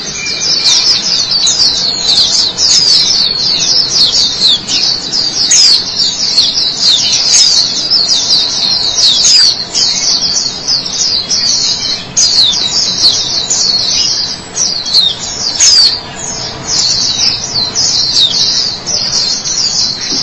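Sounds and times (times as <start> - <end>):
White-eye song: 0.0 - 20.2.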